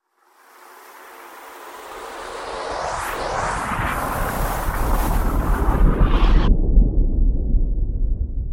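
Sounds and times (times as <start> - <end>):
meteorite asteroid sound: 0.3 - 8.4.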